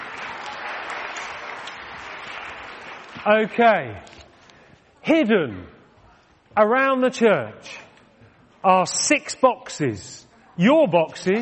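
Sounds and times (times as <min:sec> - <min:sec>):
crowd clapping: 0:00.0 - 0:04.1
speech: 0:03.2 - 0:04.1, 0:05.0 - 0:05.8, 0:06.6 - 0:07.8, 0:08.6 - 0:11.4.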